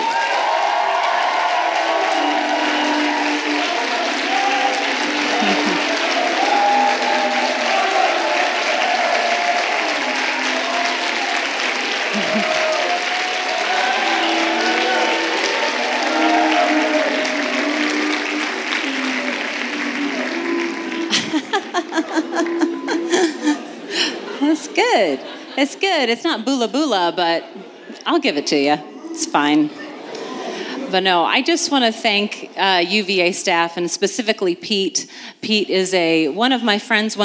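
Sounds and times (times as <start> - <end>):
crowd clapping and cheering: 0.0 - 25.6
whoops and laughter: 12.1 - 12.8, 19.9 - 24.1
speech: 26.1 - 29.8, 30.9 - 37.2.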